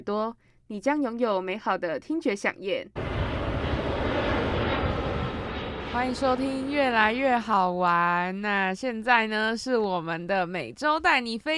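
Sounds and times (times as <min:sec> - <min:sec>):
speech: 0:00.0 - 0:03.1, 0:05.9 - 0:11.5
airplane engines roaring on takeoff: 0:03.0 - 0:07.6.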